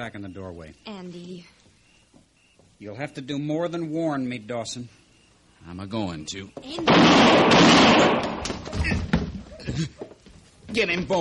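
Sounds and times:
speech: 0.0s - 1.6s, 2.8s - 5.0s, 5.6s - 9.0s, 9.8s - 10.0s, 10.7s - 11.1s
gunshot in a western radio drama shootout: 6.9s - 8.8s.

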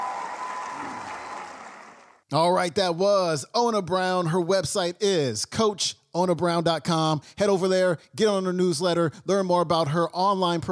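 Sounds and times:
audience applause: 0.0s - 2.2s
speech: 2.3s - 10.7s.

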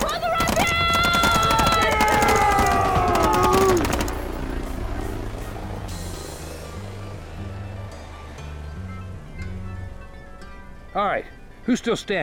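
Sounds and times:
rifle gunfire at a helicopter: 0.0s - 4.8s
helicopter mechanical drone: 0.0s - 8.2s
speech: 11.1s - 12.2s.

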